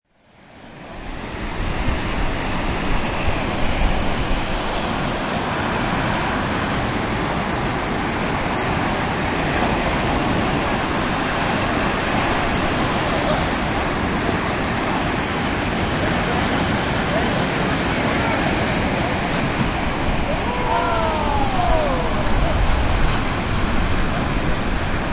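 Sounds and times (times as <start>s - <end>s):
ocean waves on beach: 0.2s - 25.1s
distant background noise of human voices: 14.8s - 24.3s.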